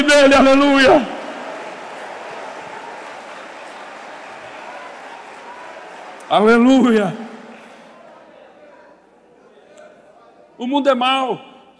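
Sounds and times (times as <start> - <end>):
crowd clapping: 0.0 - 9.0
speech: 0.1 - 1.2, 6.3 - 7.2, 10.6 - 11.5.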